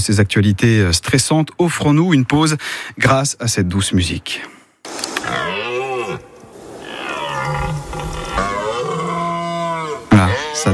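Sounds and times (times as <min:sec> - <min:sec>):
speech: 0:00.0 - 0:05.5, 0:10.2 - 0:10.7
red deer stag bellowing during rut: 0:05.2 - 0:10.7.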